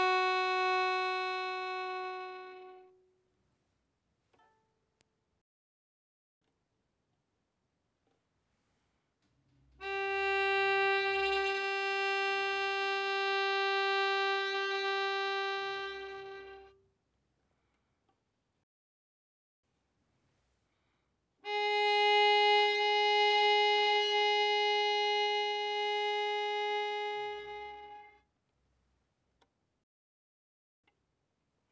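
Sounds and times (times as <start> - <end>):
violin bowed fortissimo on the D string: 0.0 - 3.0, 9.8 - 16.8, 21.4 - 28.2.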